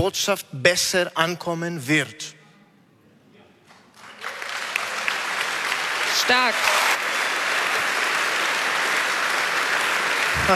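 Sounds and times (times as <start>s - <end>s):
speech: 0.0s - 2.4s, 6.3s - 6.8s, 10.4s - 10.5s
audience applause: 3.9s - 10.5s.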